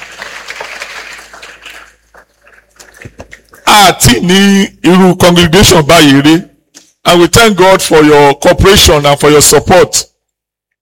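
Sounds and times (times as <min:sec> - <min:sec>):
audience clapping: 0:00.0 - 0:03.7
speech: 0:03.8 - 0:06.5, 0:07.1 - 0:10.1.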